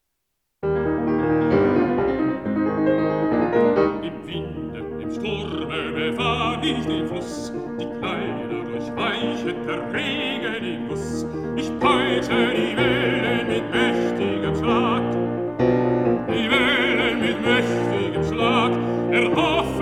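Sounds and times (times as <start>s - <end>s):
piano: 0.6s - 19.8s
person singing: 3.9s - 15.3s, 16.3s - 19.8s.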